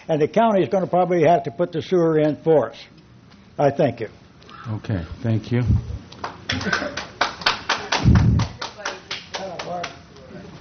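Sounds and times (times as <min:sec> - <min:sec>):
speech: 0:00.1 - 0:03.0, 0:03.6 - 0:06.0, 0:06.6 - 0:07.0
audience clapping: 0:06.1 - 0:10.0.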